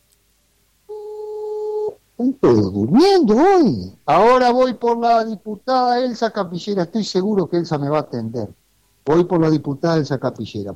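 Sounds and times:
telephone ringback tone on an outgoing call: 0.9 - 2.0
speech: 2.2 - 10.7.

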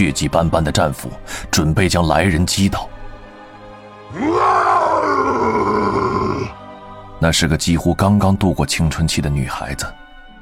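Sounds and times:
speech: 0.0 - 3.0, 7.2 - 10.0
orc clan war cry roar: 4.1 - 6.6.

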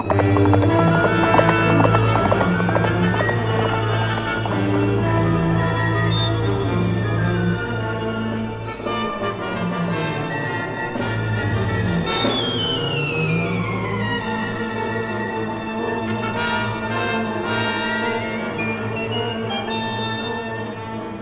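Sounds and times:
horse ridden by an Apache galloping toward a river ford: 0.0 - 6.0
loud sustained droning music: 0.0 - 19.7.

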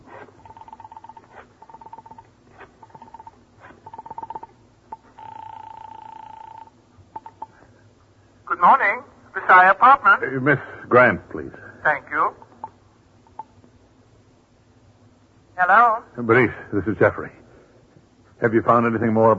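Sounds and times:
telephone buzzing tones: 0.4 - 7.7, 12.5 - 13.6
speech: 8.6 - 12.4, 16.2 - 17.4, 18.4 - 19.3.

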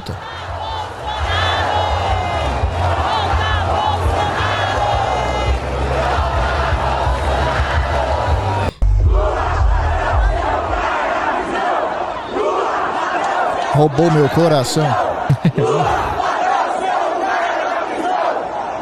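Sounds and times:
large crowd of Brazilian Bolsonaro supporters chanting like football supporters: 0.0 - 18.8
speech: 0.1 - 0.3, 13.8 - 16.2
deep drumming rumble: 8.7 - 11.0
laughter: 14.0 - 16.5.

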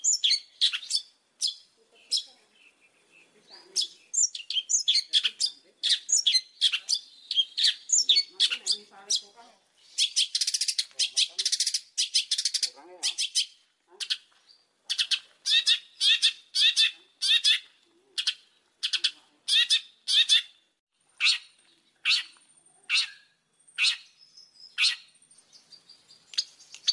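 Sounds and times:
Oriental magpie-robin singing: 0.0 - 20.6, 21.2 - 26.9.

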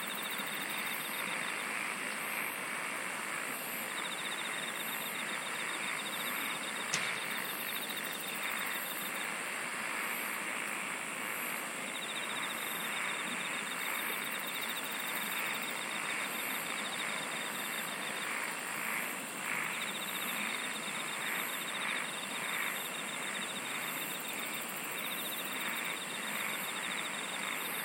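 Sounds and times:
insects singing in a dense chorus: 0.0 - 27.8
steady high drone and hiss: 0.0 - 27.8.

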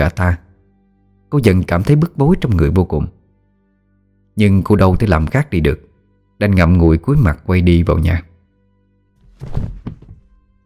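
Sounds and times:
speech: 0.0 - 0.4, 1.3 - 3.2, 4.4 - 8.3, 9.4 - 9.8
thud of a body falling onto ground covered in wild grass: 9.2 - 10.3.

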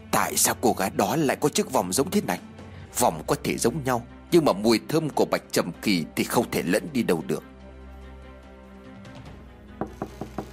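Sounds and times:
speech: 0.2 - 7.5
knocking on a door: 9.8 - 10.5.

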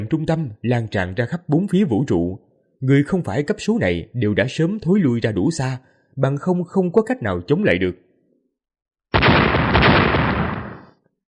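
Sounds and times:
speech: 0.0 - 8.1
lightning crack: 9.2 - 11.0
stars exploding: 9.2 - 11.0.

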